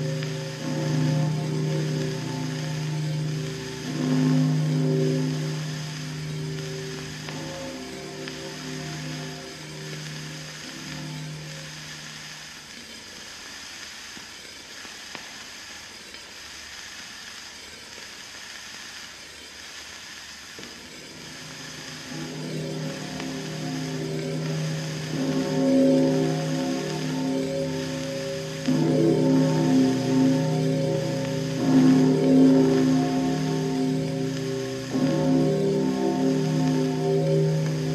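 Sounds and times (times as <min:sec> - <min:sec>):
bells ringing: 0:00.0 - 0:12.6, 0:20.8 - 0:37.9.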